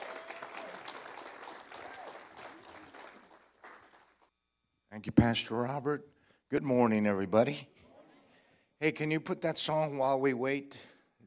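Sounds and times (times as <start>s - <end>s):
audience applause: 0.0s - 4.3s
speech: 5.0s - 7.8s, 8.8s - 10.9s.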